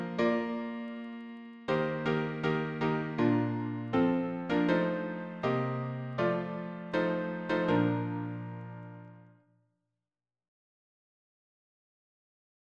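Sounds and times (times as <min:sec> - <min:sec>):
piano harmony: 0:00.0 - 0:09.4.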